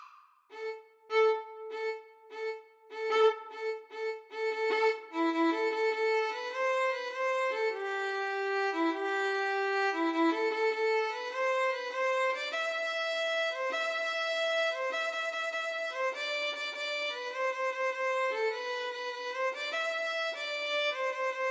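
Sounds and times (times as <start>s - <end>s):
violin duet: 0.5s - 21.4s.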